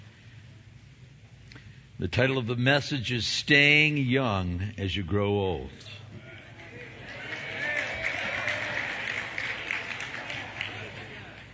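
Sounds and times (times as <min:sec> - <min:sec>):
speech: 0:02.0 - 0:06.0
audience applause: 0:06.4 - 0:11.5.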